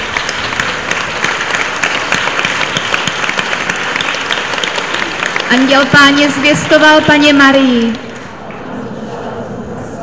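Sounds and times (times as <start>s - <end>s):
audience applause at a church gathering: 0.0s - 8.3s
speech: 5.5s - 8.1s.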